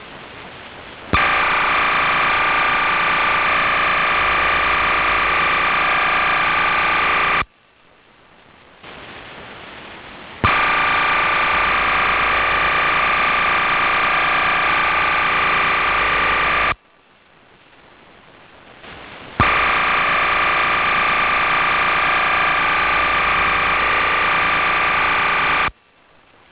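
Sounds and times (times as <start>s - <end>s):
AM radio audio at 6 kHz bandwidth: 1.1s - 7.5s, 10.4s - 16.8s, 18.8s - 25.8s.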